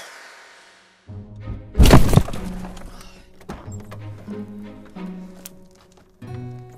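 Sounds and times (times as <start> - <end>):
car crashing into another car: 1.8 - 3.0.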